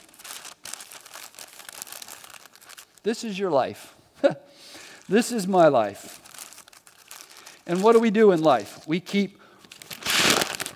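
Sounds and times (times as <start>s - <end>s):
paper bag crinkling: 0.0s - 3.1s, 4.7s - 8.9s, 9.6s - 10.7s
speech: 3.0s - 6.2s, 7.7s - 9.4s.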